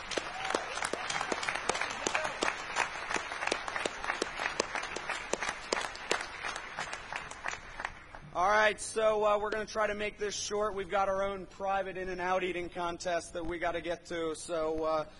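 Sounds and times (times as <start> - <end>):
crowd applauding: 0.0 - 8.3
speech: 8.7 - 15.1.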